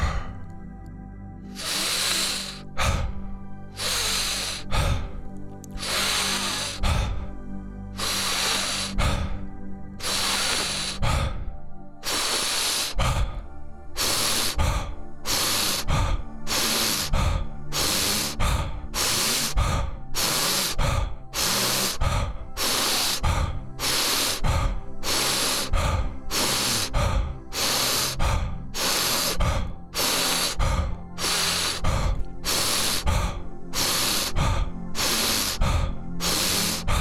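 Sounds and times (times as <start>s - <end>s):
deep breathing during a guided breathing exercise: 0.0s - 36.9s.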